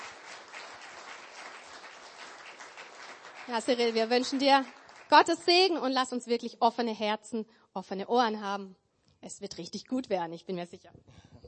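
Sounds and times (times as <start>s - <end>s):
crowd applauding: 0.0s - 5.6s
speech: 3.5s - 11.3s.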